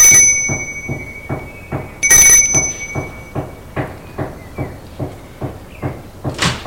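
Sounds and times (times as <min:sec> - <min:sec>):
doorbell ringing: 0:00.0 - 0:03.6
door opening: 0:00.0 - 0:06.6.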